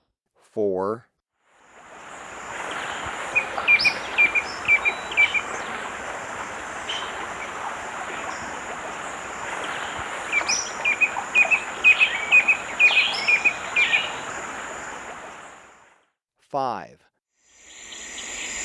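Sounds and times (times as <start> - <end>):
stripe-chested antwren calling in Ecuador: 1.9 - 15.7.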